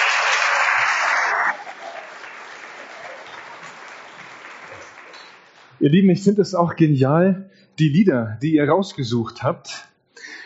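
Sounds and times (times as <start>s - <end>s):
audience applause: 0.0s - 5.8s
speech: 5.8s - 9.9s.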